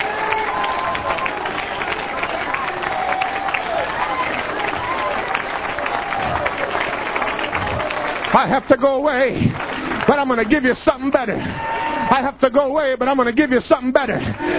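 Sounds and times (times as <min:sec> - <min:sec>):
audience clapping hands in praise: 0:00.0 - 0:12.3
speech: 0:08.4 - 0:14.5.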